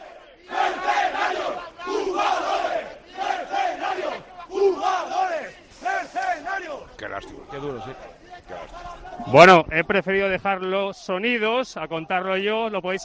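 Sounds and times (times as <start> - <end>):
football supporters shouting at team buses: 0.0 - 10.4
speech: 9.3 - 13.0.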